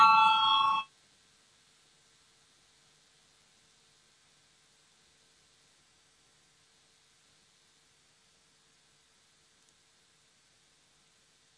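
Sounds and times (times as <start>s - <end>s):
parliamentary voting bell ringing: 0.0s - 0.9s.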